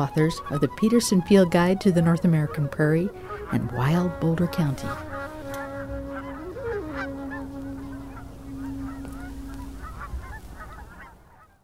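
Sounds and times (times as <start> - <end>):
speech: 0.0 - 5.2
snow geese flock honking: 0.0 - 11.6
low droning tone: 3.5 - 11.0.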